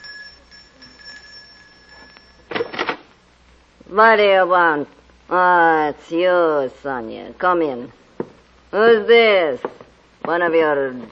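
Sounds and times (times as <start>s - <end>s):
doorbell ringing: 0.0s - 2.7s
speech: 3.9s - 8.0s, 8.7s - 11.1s.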